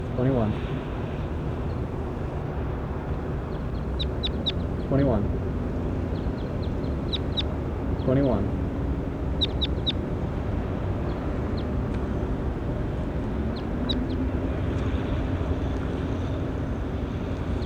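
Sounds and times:
low rumble: 0.0 - 17.6
speech: 0.2 - 0.9
bird chirping: 3.5 - 5.1, 6.0 - 8.4, 9.2 - 10.1
bird squawk: 3.6 - 5.3, 6.1 - 8.6, 9.2 - 10.1.

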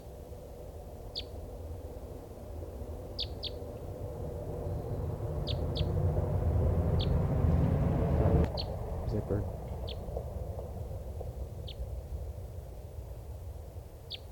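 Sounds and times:
low rumbling background: 0.5 - 14.2
type three bird flight call: 3.2 - 3.7, 4.6 - 6.0, 7.0 - 7.2, 8.5 - 10.1, 11.6 - 11.9.

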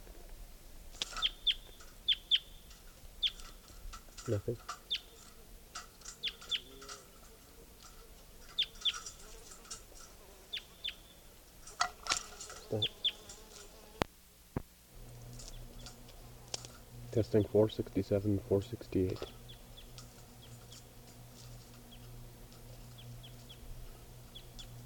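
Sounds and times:
low hum: 0.0 - 24.8
bird chirping: 1.0 - 7.0, 8.4 - 11.4, 12.6 - 13.5, 15.3 - 16.1, 17.2 - 24.8
speech: 4.3 - 4.8, 17.2 - 19.4.

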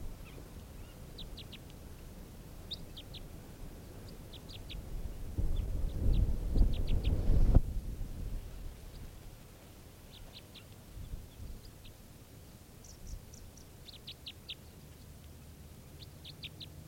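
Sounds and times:
odd low-pitched bird calls: 0.0 - 1.7, 2.6 - 4.9, 5.5 - 7.5, 10.1 - 12.0, 12.8 - 15.2, 15.8 - 16.8.

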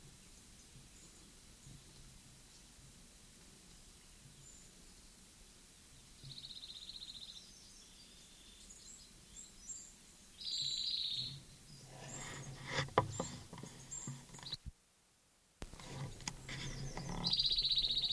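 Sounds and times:
songbird singing high thin phrases with a buzzy trill: 0.0 - 14.7, 15.6 - 18.1
soft rustling: 11.8 - 14.7, 15.6 - 17.4.

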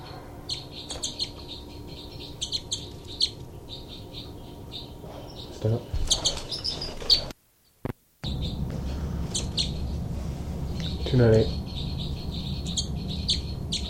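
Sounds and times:
two birds giving threat calls while fighting: 0.0 - 13.8
bird squawks: 0.5 - 7.3, 9.3 - 9.8, 10.8 - 13.8
speech: 5.6 - 6.0, 11.2 - 11.6.

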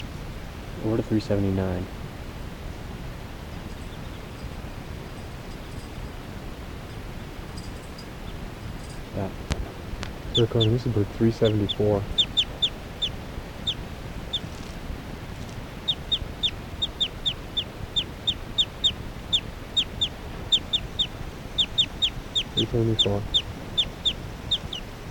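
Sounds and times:
speech: 0.8 - 2.0, 10.4 - 12.2, 22.7 - 23.4
occasional bird chirps and clucks: 7.6 - 25.0.

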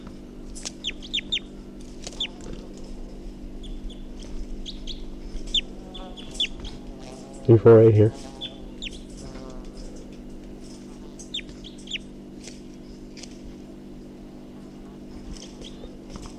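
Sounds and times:
low droning hum: 0.0 - 16.3
high downward-sweeping bird chirps: 0.8 - 1.5, 4.6 - 6.6, 8.4 - 9.1, 11.2 - 12.1
speech: 7.5 - 8.3.

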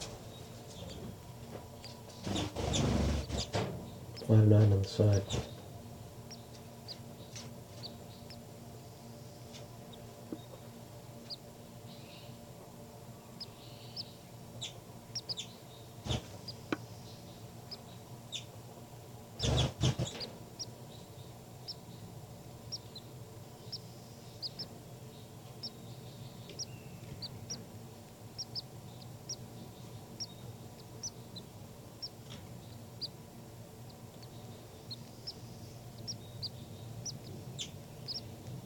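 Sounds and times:
baby birds calling: 0.0 - 8.5, 9.4 - 12.4, 13.3 - 18.6, 19.3 - 38.6
speech: 4.3 - 5.6.

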